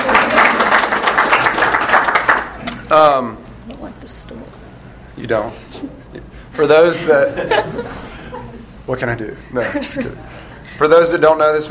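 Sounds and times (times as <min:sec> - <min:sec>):
room full of people clapping: 0:00.0 - 0:02.6
speech: 0:02.9 - 0:03.8, 0:05.2 - 0:05.9, 0:06.6 - 0:08.0, 0:08.9 - 0:11.6
laughter: 0:06.9 - 0:08.8, 0:09.4 - 0:10.6.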